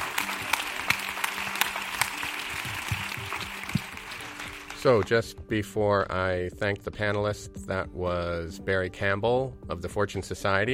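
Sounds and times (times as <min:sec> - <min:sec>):
audience round of applause for panelists: 0:00.0 - 0:05.1
speech: 0:04.8 - 0:10.7.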